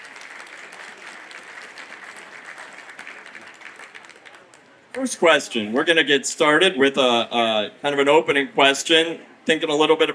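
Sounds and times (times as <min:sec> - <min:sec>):
audience applause: 0:00.0 - 0:05.0
speech: 0:05.0 - 0:10.1.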